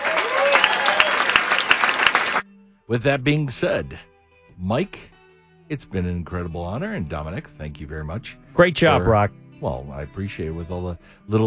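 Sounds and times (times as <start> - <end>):
crowd applause honoring military service members: 0.0 - 2.4
faint cheering: 0.0 - 2.4
speech: 2.9 - 5.1, 5.7 - 11.4.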